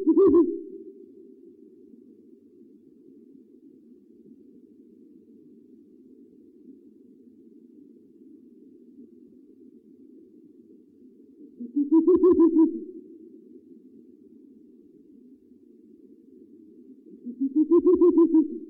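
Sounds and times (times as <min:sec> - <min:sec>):
owl hooting: 0:00.0 - 0:01.2, 0:11.4 - 0:13.1, 0:17.1 - 0:18.6.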